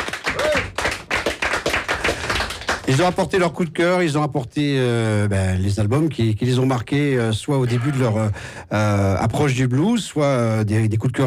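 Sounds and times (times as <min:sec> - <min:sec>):
sparse hand claps from blues musicians at a radio show: 0:00.0 - 0:03.2
speech: 0:02.9 - 0:11.2.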